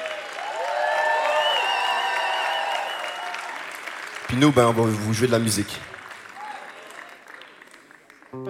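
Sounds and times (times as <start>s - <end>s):
audience applauding: 0.0s - 8.4s
whoops and shouts from many voices: 0.4s - 3.6s
speech: 4.3s - 5.9s.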